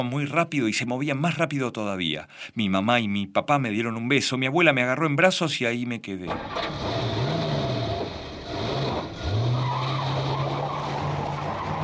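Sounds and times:
speech: 0.0 - 7.1
car driving away: 6.3 - 11.8.

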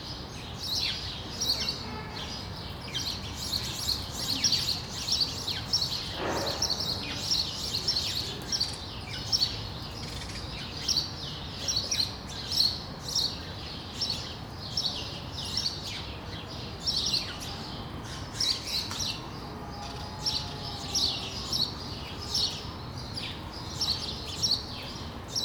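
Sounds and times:
several sparrows chirping on a street in Brussels: 0.3 - 25.4.

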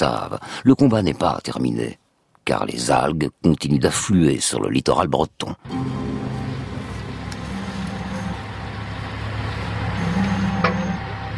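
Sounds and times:
speech: 0.0 - 6.4
heavy diesel engines of tractors and trucks clearing beach of Saint-Michel-en-Grève: 5.7 - 11.3.

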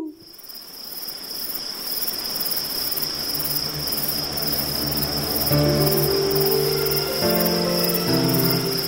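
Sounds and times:
howling at the moon at night: 3.0 - 8.8.

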